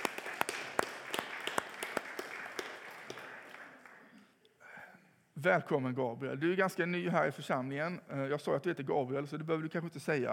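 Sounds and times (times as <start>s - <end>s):
audience giving encouraging applause: 0.0s - 4.2s
speech: 5.4s - 10.3s.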